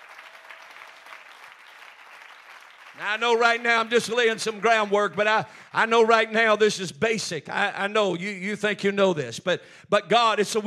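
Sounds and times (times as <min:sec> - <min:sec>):
audience clapping hands: 0:00.0 - 0:06.3
speech: 0:03.0 - 0:10.6.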